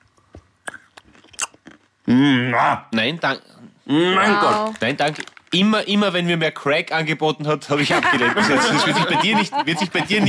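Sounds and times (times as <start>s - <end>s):
crunching a cinnamon-coated almond: 0.1s - 2.0s
speech: 2.1s - 10.2s
laughter: 7.7s - 10.2s.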